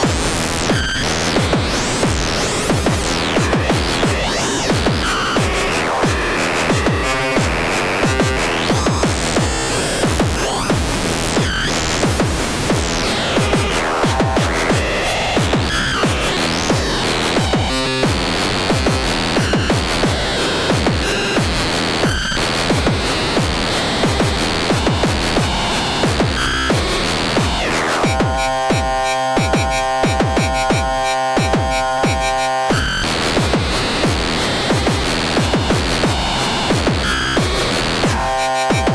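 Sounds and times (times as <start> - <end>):
noise beat: 0.0 - 38.9.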